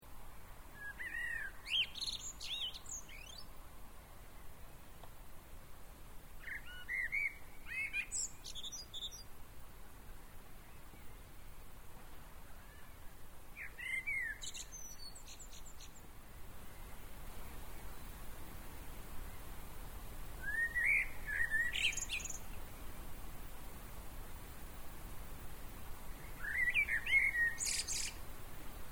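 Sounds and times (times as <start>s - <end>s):
steady background hiss: 0.0s - 28.9s
common blackbird song with fluty warble and twitters: 0.7s - 3.6s, 6.4s - 9.4s, 10.1s - 18.2s, 20.2s - 23.5s, 25.7s - 28.9s.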